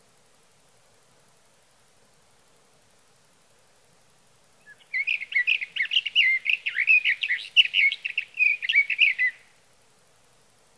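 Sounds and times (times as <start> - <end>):
Sage thrasher singing: 4.6 - 9.5.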